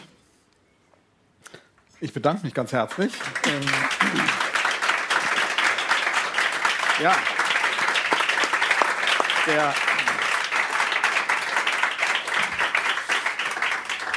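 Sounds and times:
speech: 2.0s - 4.5s, 7.0s - 7.4s, 9.5s - 9.9s
audience applause: 2.9s - 14.1s.

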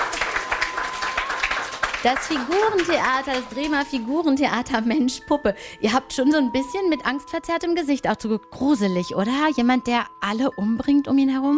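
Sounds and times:
applause: 0.0s - 4.2s
speech: 2.0s - 11.5s.

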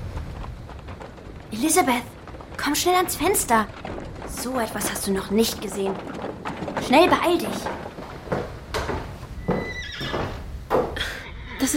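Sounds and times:
horse-drawn carriage arriving: 0.0s - 11.2s
speech: 1.5s - 7.8s
horse neighing: 9.4s - 10.4s.

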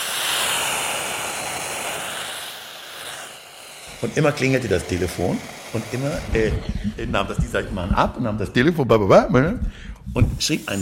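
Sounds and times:
large dental saliva suction device running: 0.0s - 8.7s, 9.6s - 10.8s
speech: 4.0s - 10.8s.

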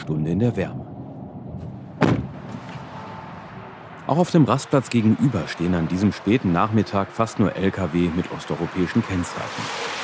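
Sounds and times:
speech: 0.0s - 0.8s, 4.1s - 10.0s
car door slamming at a motorway rest stop: 2.0s - 2.8s.

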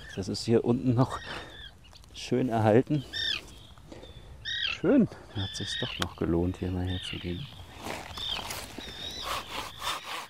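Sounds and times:
speech: 0.2s - 1.5s, 2.2s - 3.2s, 4.8s - 7.6s
hand saw sawing through fresh, undried wood: 9.1s - 10.2s.

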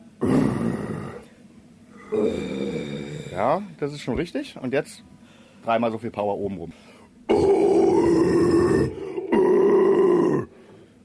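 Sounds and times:
growling vocal technique: 0.2s - 1.3s, 1.9s - 3.7s, 7.3s - 10.6s
speech: 3.4s - 7.6s.

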